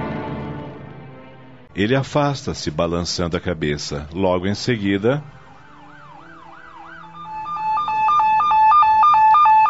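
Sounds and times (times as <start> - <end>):
speech: 1.8 - 5.4
police car siren: 5.3 - 9.6.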